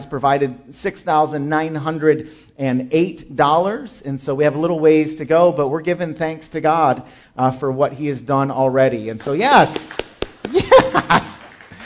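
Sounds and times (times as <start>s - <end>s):
speech: 0.1s - 11.3s
scattered hand claps: 9.5s - 11.8s
cheering or laughter: 10.5s - 11.8s.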